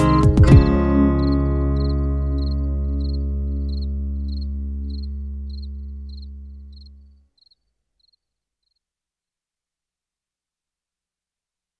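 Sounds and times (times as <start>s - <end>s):
piano piece: 0.0s - 7.0s.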